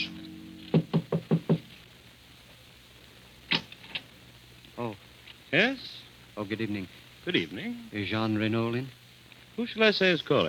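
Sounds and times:
knocking on a door: 0:00.7 - 0:01.7
speech: 0:04.9 - 0:09.0, 0:09.6 - 0:10.4.

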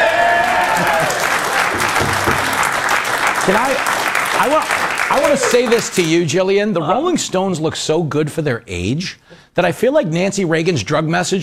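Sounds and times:
studio audience applauding: 0:00.0 - 0:06.3
speech: 0:03.5 - 0:11.4.

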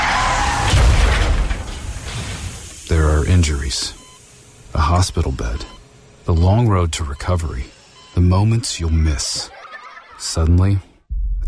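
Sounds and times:
dramatized car crash sound effect: 0:00.0 - 0:02.8
speech: 0:03.4 - 0:04.0, 0:04.7 - 0:09.6, 0:10.2 - 0:10.9
laughter: 0:08.9 - 0:10.7.

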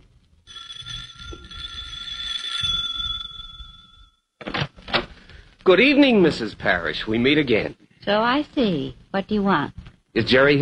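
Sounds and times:
doorbell buzzing: 0:00.5 - 0:04.2
speech: 0:05.6 - 0:10.6.

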